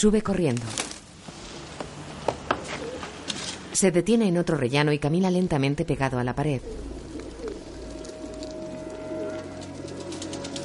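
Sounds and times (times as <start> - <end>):
speech: 0.0 - 0.9, 3.8 - 6.9
steady hum: 0.0 - 10.6
pigeons cooing on a rooftop: 2.4 - 3.3, 6.5 - 10.6.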